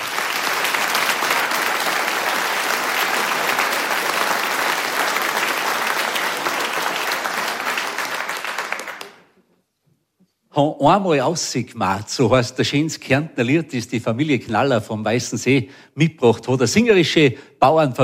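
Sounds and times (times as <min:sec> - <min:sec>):
audience applause: 0:00.0 - 0:09.3
speech: 0:10.6 - 0:18.0.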